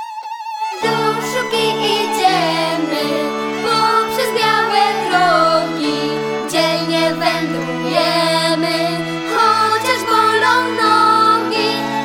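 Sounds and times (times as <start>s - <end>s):
vocal version of music: 0.7s - 12.0s.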